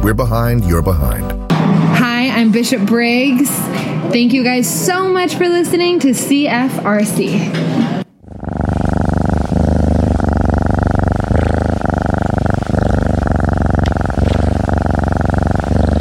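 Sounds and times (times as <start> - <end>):
speech: 0.0 - 8.0
healthy domestic cat purring: 8.2 - 16.0.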